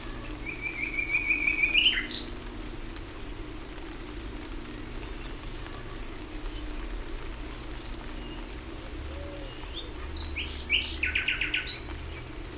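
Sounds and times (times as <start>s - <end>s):
common nightingale singing: 0.0s - 2.5s, 4.7s - 12.4s.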